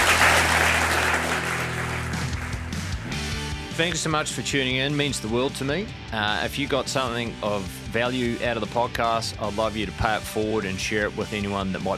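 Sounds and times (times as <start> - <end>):
crowd applauding: 0.0 - 3.1
speech: 3.8 - 11.9.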